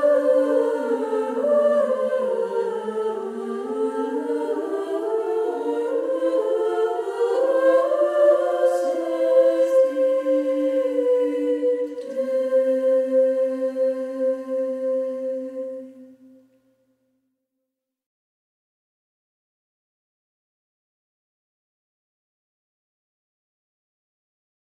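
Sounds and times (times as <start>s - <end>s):
Benedictine monks chanting: 0.0s - 16.3s.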